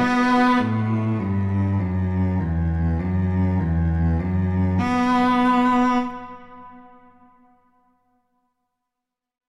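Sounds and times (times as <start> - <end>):
viola and cello playing vivace moderato: 0.0 - 6.7.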